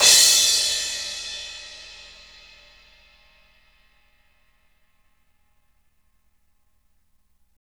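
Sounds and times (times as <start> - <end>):
crash cymbal from Roland MV8800: 0.0 - 3.8.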